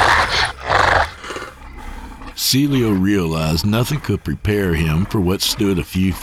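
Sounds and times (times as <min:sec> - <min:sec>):
wolfish beast roaring: 0:00.0 - 0:03.1
speech: 0:02.5 - 0:06.2.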